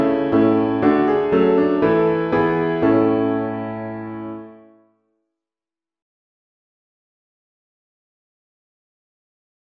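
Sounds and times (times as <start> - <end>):
piano playing all parts: 0.0 - 4.8.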